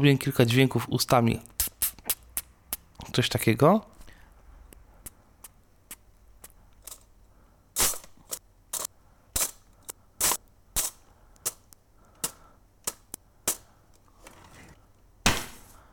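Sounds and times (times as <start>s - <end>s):
speech: 0.0s - 1.6s, 3.2s - 3.9s
cutlery drawer shutting with metallic clatter: 14.2s - 15.8s.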